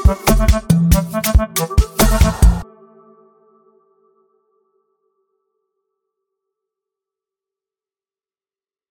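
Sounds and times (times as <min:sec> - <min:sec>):
cruise beat: 0:00.0 - 0:02.6.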